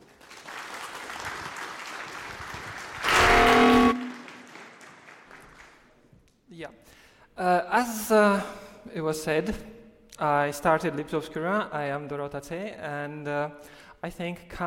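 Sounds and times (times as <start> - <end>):
audience applauding: 0.0 - 6.0
speech: 6.6 - 14.6.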